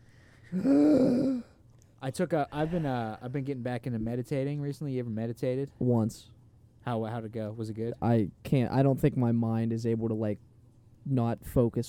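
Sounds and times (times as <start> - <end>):
deep breath released as a voiced sigh: 0.0 - 1.6
speech: 0.5 - 1.4, 2.0 - 11.8.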